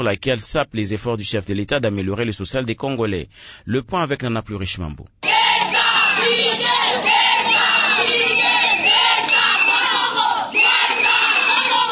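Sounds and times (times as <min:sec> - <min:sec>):
speech: 0:00.0 - 0:05.2
market vendors shouting and chanting in protest: 0:05.2 - 0:11.9.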